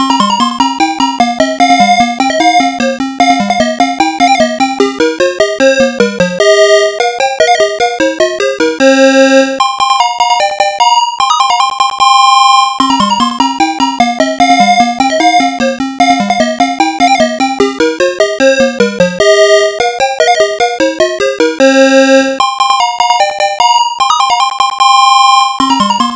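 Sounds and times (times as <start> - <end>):
arcade background music: 0.0 - 26.1.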